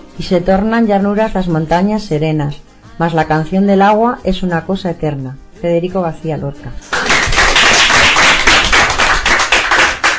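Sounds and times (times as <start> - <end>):
speech: 0.2 - 6.9
applause: 6.8 - 10.1.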